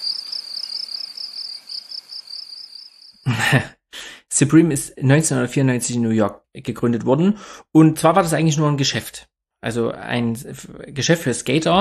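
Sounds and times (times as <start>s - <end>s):
cricket chirping sound effect: 0.0s - 3.3s
speech: 3.4s - 3.8s, 4.4s - 11.7s.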